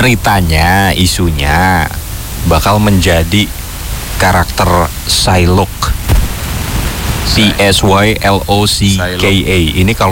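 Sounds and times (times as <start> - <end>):
speech: 0.0 - 3.6, 4.2 - 5.8, 7.3 - 10.1
heavy rain outside: 0.0 - 10.1.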